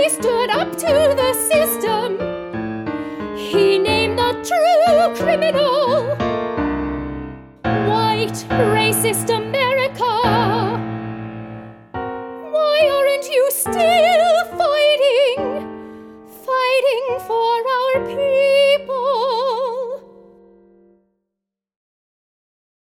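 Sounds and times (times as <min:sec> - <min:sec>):
soprano singing an aria: 0:00.0 - 0:02.4, 0:03.3 - 0:06.3, 0:07.7 - 0:10.9, 0:12.4 - 0:15.7, 0:16.3 - 0:20.2.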